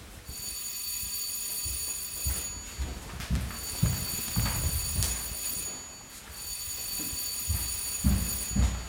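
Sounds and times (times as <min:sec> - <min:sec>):
theatre bell signal ringing: 0:00.3 - 0:08.8.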